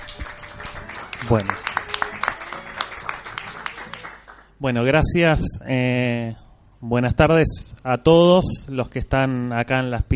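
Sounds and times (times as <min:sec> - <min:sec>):
audience applause: 0:00.0 - 0:04.6
speech: 0:01.2 - 0:01.7, 0:04.6 - 0:10.1.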